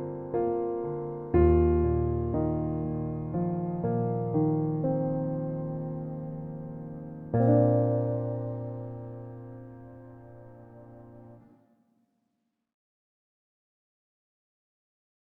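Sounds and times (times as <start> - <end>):
piano: 0.0 - 11.7.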